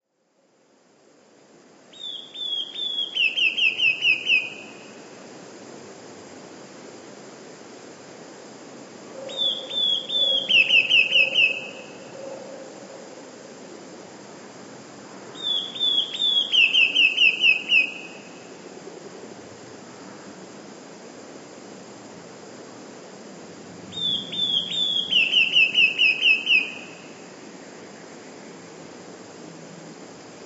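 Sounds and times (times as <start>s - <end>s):
faint background hiss: 0.0s - 30.4s
Eurasian blue tit singing: 9.3s - 11.8s, 15.4s - 18.0s, 23.9s - 26.9s.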